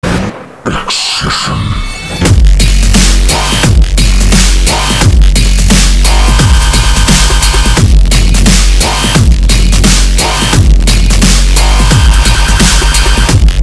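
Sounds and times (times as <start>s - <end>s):
drum and bass music: 0.7s - 13.6s.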